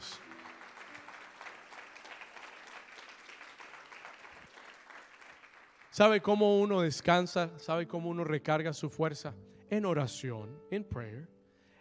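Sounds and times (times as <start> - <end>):
audience applauding: 0.0 - 6.3
speech: 6.0 - 11.4.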